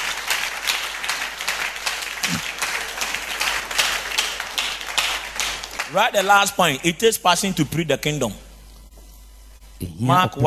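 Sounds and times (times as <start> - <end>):
audience clapping: 0.0 - 7.2
speech: 2.3 - 2.6, 5.9 - 8.5, 9.8 - 10.4.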